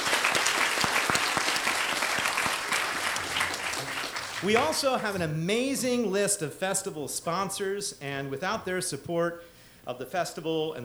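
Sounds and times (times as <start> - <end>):
audience round of applause for the Midtown Scholar employees: 0.0 - 5.2
speech: 4.4 - 10.8.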